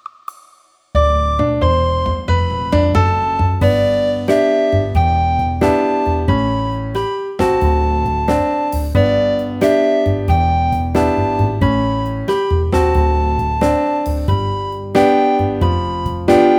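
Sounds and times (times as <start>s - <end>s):
practice piece played on a recorder: 1.0s - 16.5s.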